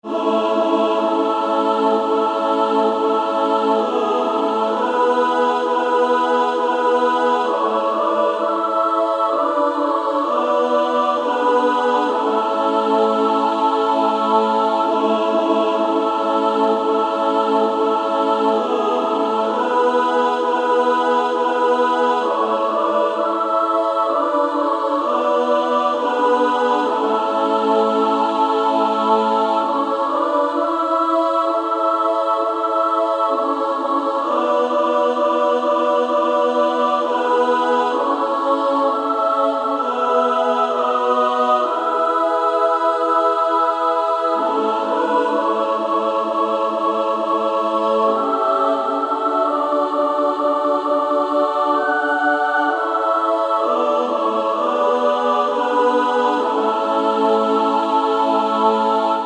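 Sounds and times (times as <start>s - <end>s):
female SSAA choir singing: 0.0s - 59.2s.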